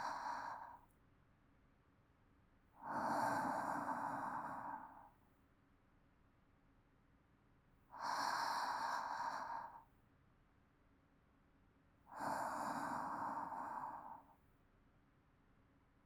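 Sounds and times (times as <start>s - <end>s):
calm sleep breathing: 0.0s - 0.9s, 2.8s - 5.2s, 8.0s - 9.9s, 12.1s - 14.4s.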